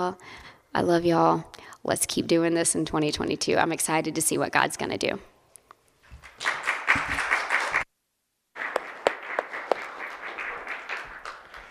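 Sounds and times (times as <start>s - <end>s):
speech: 0.0s - 5.3s
audience clapping: 6.2s - 7.9s, 8.6s - 11.6s.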